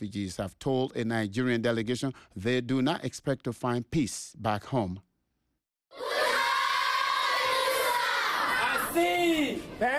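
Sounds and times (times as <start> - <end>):
speech: 0.0 - 5.1, 9.0 - 9.9
primary school children singing at the Minawawa refugee camp in northern Cameroon: 5.9 - 8.8.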